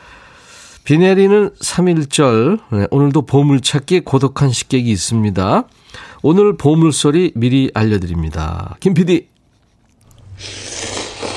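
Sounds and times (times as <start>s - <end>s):
speech: 0.9s - 9.3s, 10.4s - 11.0s
person slurping noodles: 10.0s - 11.3s.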